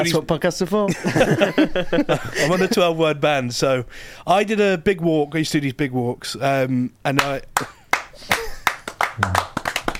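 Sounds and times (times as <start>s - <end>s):
speech: 0.0s - 8.4s, 9.2s - 9.5s
man clapping his hands for himself: 7.2s - 9.9s.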